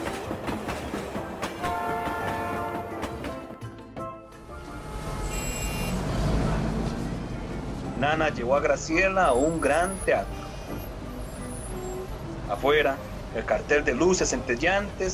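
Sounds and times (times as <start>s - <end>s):
train rumbling and clattering on rails: 0.0s - 3.7s, 4.3s - 15.1s
train horn: 1.6s - 3.5s, 4.5s - 6.1s
speech: 8.0s - 10.4s, 12.5s - 15.1s.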